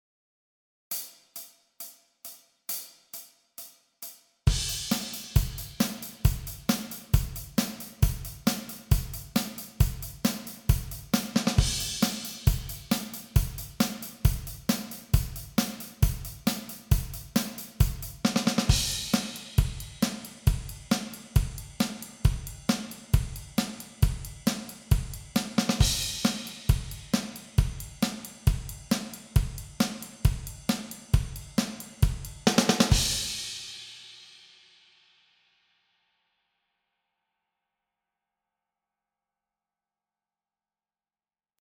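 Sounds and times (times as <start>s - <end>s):
135 bpm practice music track: 0.9s - 33.6s.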